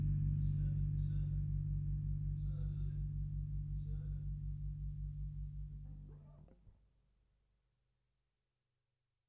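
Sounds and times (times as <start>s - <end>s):
bass in a modal jam: 0.0s - 6.7s.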